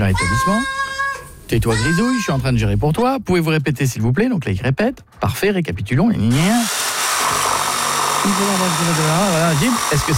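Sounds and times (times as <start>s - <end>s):
speech: 0.1s - 0.8s, 1.5s - 6.8s, 8.2s - 10.1s
neighbour's power drill running during building work: 6.3s - 10.1s.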